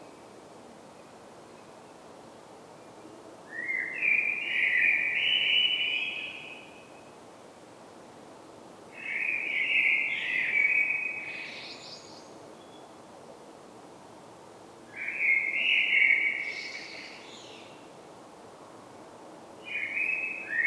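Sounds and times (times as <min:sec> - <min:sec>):
Common blackbird song: 0:03.5 - 0:06.8, 0:09.0 - 0:12.9, 0:15.0 - 0:17.8, 0:19.6 - 0:20.6.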